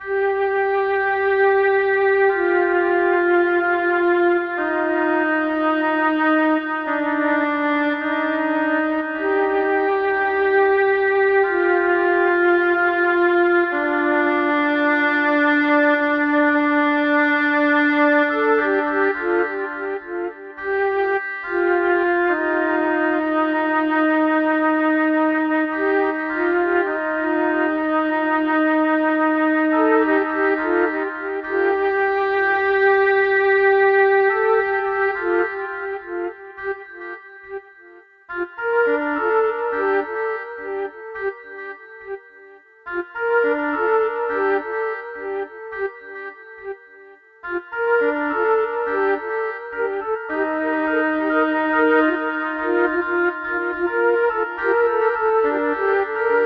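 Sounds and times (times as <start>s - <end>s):
flute: 0.0s - 56.4s.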